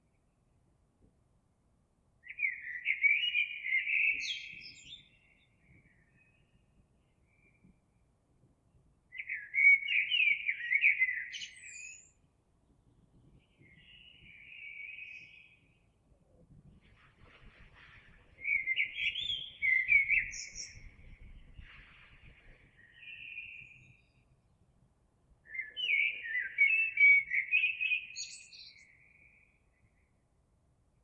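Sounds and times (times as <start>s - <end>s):
Eurasian blackbird song: 2.2s - 8.0s, 9.1s - 12.2s, 13.1s - 16.0s, 16.7s - 24.4s, 25.4s - 30.2s.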